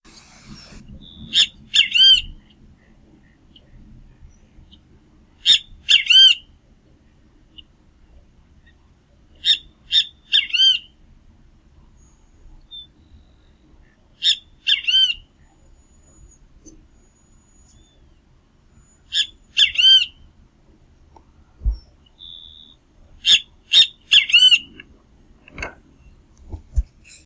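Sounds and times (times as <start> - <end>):
Pitangus sulphuratus: 0.4 - 6.5, 8.6 - 11.0, 11.9 - 20.3, 21.6 - 25.0.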